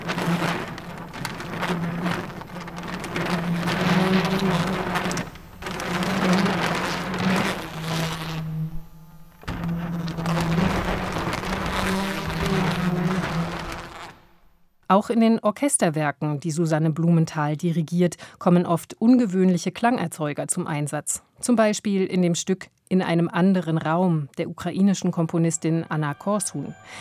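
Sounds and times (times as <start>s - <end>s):
electric toothbrushes buzzing as musical instruments: 0.0s - 14.4s
speech: 14.9s - 26.9s.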